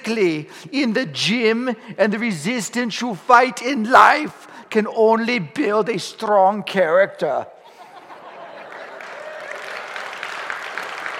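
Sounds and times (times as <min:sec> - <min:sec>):
speech: 0:00.1 - 0:07.6
laughter: 0:07.6 - 0:09.8
audience applause: 0:08.4 - 0:11.1.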